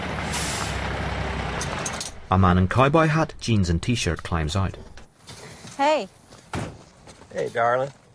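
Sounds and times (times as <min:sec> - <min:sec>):
large truck halting with air brakes: 0:00.2 - 0:00.9
speech: 0:02.3 - 0:04.9, 0:05.8 - 0:06.7, 0:07.3 - 0:08.0.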